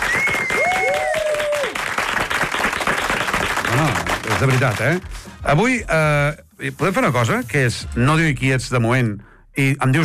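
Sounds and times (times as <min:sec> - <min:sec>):
studio audience applause: 0:00.0 - 0:05.2
speech: 0:03.8 - 0:10.0.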